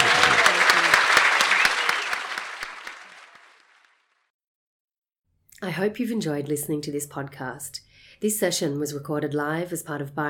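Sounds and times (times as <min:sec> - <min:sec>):
voices cheering: 0:00.0 - 0:03.6
audience applause: 0:00.0 - 0:04.1
speech: 0:05.8 - 0:10.2.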